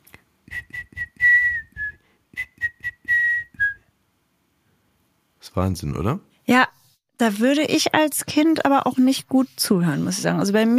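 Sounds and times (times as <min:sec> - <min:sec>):
voice imitating dolphin whistling: 0:00.5 - 0:03.8
speech: 0:05.5 - 0:10.7.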